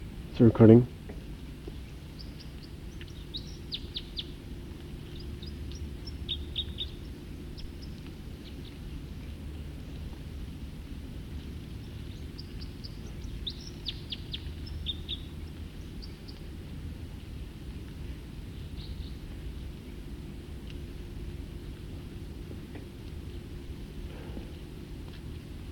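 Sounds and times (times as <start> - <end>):
low rumble: 0.0 - 25.7
speech: 0.4 - 1.0
bird song: 2.2 - 4.3, 5.1 - 7.0, 12.1 - 15.3.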